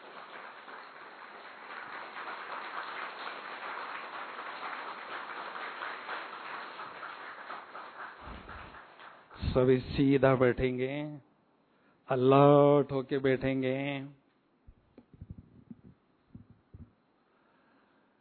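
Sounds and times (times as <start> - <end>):
crowd applause: 0.0 - 9.4
speech: 9.5 - 11.3, 12.1 - 14.2.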